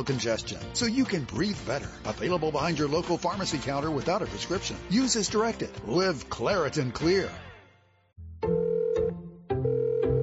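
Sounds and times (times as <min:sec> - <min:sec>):
speech: 0:00.0 - 0:07.5
telephone ringing for a prepaid calling-card call to El Salvador: 0:08.5 - 0:10.2.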